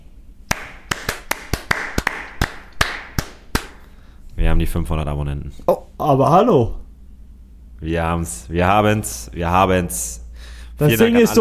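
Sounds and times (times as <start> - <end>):
two people clapping hands: 0.4 - 3.9
speech: 4.4 - 6.8, 7.8 - 10.2, 10.8 - 11.3.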